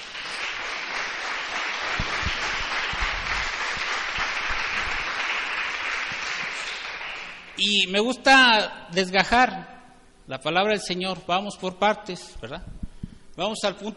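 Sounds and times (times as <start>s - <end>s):
audience applause: 0.0s - 7.5s
speech: 7.6s - 12.8s, 13.4s - 13.9s.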